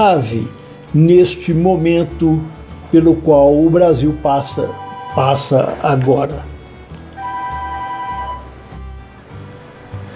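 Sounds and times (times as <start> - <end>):
speech: 0.0 - 6.5
telephone ringing: 4.7 - 6.2, 7.2 - 8.6.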